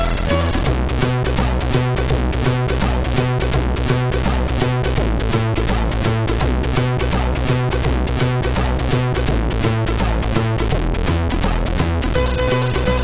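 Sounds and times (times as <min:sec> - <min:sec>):
reggae music on a MOS6581R3 SID chip: 0:00.0 - 0:13.0.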